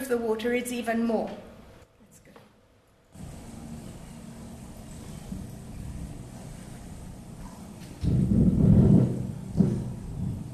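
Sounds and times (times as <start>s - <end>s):
speech: 0.1s - 1.5s
tanker ship engine rumble moving through channel: 3.2s - 10.5s.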